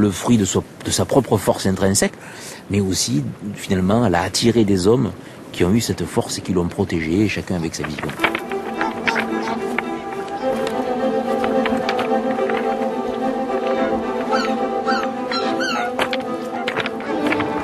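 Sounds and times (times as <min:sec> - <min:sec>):
speech: 0:00.0 - 0:08.4
light wind: 0:00.0 - 0:17.6
footsteps crunching across pebbles: 0:07.1 - 0:14.6, 0:15.3 - 0:17.6.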